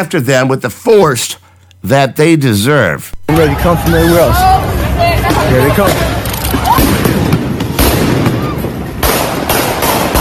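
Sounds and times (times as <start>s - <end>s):
speech: 0.0s - 6.2s
noisy rumbling background: 3.2s - 10.2s
real gunshots fired at a man: 5.2s - 10.2s.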